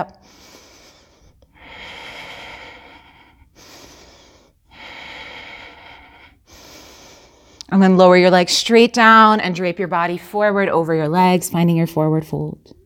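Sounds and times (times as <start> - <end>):
speech: 0.0 - 0.5, 7.7 - 12.8
slow deep breaths during a yoga session: 0.0 - 7.7.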